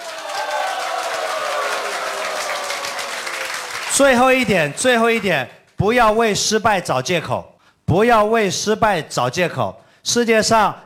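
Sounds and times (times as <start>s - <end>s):
audience applause: 0.0s - 5.3s
speech: 4.0s - 10.8s.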